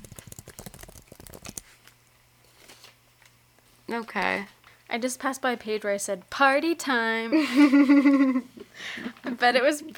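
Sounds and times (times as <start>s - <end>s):
quick typing on a computer keyboard: 0.0s - 1.7s
speech: 3.9s - 9.9s.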